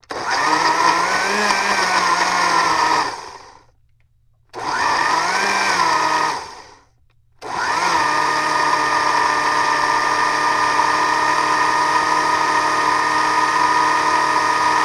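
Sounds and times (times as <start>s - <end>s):
blender blending banana: 0.0s - 3.7s, 4.5s - 14.8s.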